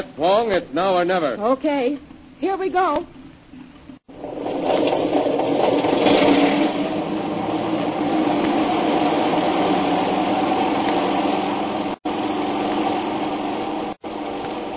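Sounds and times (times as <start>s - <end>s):
speech: 0.0s - 3.2s
airplane engine: 4.1s - 14.7s.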